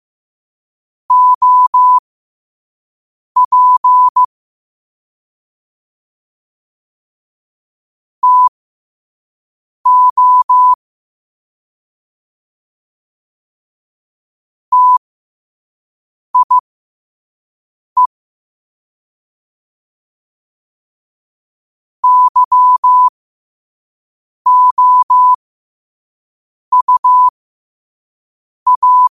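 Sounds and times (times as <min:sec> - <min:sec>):
morse code at 5 wpm: 0:01.1 - 0:02.0, 0:03.4 - 0:04.3, 0:08.2 - 0:08.5, 0:09.9 - 0:10.8, 0:14.7 - 0:15.0, 0:16.4 - 0:16.6, 0:22.0 - 0:23.1, 0:24.5 - 0:25.4, 0:26.7 - 0:27.3, 0:28.7 - 0:29.1.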